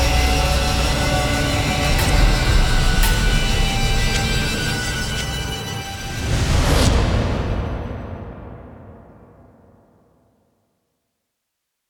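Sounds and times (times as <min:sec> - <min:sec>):
tense swirling action music: 0:00.0 - 0:09.5.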